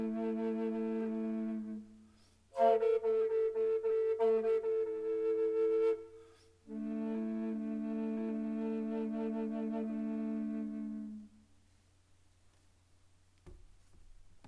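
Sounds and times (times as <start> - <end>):
contrabass Amerindian flute in A and D at 440: 0.0 - 11.5.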